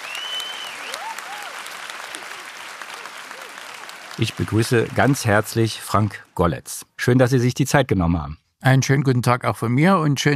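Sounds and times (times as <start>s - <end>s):
whistles and cheers: 0.0s - 4.9s
audience applause: 0.0s - 6.3s
speech: 4.2s - 10.3s.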